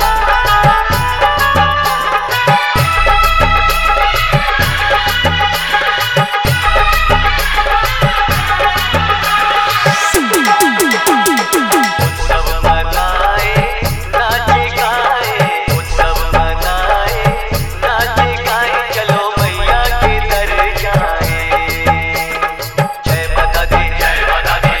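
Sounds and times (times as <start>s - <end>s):
hard dholki drumming: 0.0s - 24.7s
DJ remix of a festival song: 9.9s - 12.4s.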